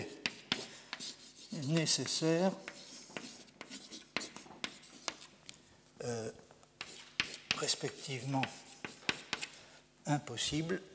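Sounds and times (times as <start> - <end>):
scratchy writing strokes during a lecture: 0.0 - 5.3, 6.8 - 9.5
speech: 1.6 - 2.7, 7.6 - 8.7, 10.1 - 10.9.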